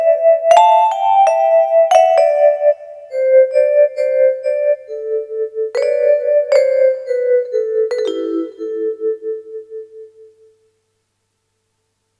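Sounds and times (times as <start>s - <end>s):
xylophone improvisation: 0.0s - 9.3s.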